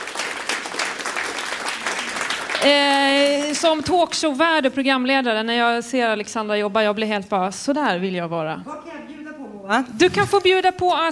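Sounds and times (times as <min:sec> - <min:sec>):
audience applause: 0:00.0 - 0:03.9
speech: 0:02.6 - 0:11.1.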